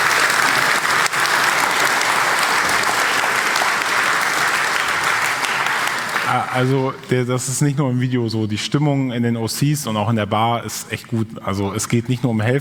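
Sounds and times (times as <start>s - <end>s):
crowd applauding: 0.0s - 7.1s
speech: 6.3s - 12.5s.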